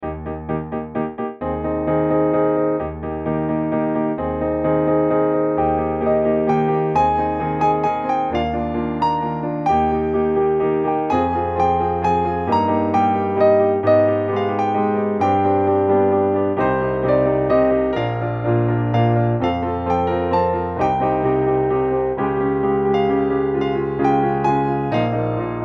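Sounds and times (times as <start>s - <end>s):
instrumental music: 0.0s - 25.6s.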